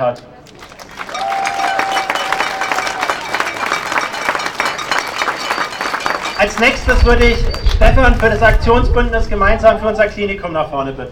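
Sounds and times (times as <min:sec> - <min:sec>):
speech: 0:00.0 - 0:00.3, 0:06.4 - 0:11.1
audience applause: 0:00.4 - 0:08.4.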